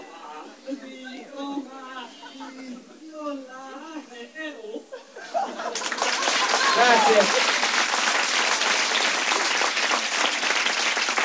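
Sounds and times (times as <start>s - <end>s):
laughter: 0.0s - 7.6s
audience applause: 5.6s - 11.2s
speech: 7.1s - 7.4s.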